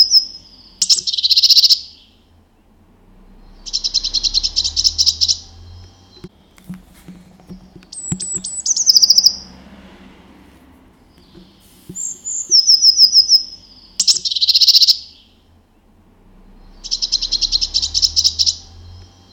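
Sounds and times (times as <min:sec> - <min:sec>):
blue tit: 0:00.0 - 0:02.2, 0:03.6 - 0:09.5, 0:11.2 - 0:15.4, 0:16.7 - 0:19.3.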